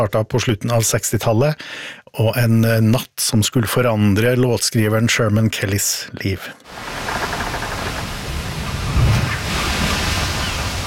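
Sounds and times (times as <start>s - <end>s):
speech: 0.0s - 7.2s
Caribbean sea waves between St. Thomas and St. Croix: 6.7s - 10.8s.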